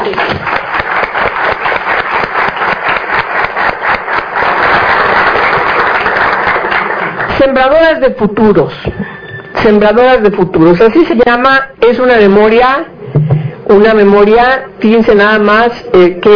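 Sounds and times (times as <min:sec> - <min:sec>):
audience applause: 0:00.0 - 0:07.3
speech: 0:07.5 - 0:16.3.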